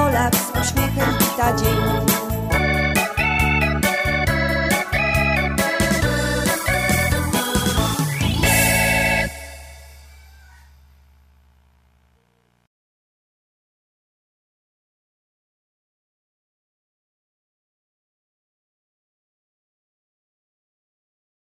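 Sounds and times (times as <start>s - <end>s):
optimistic hymn: 0.0s - 10.0s.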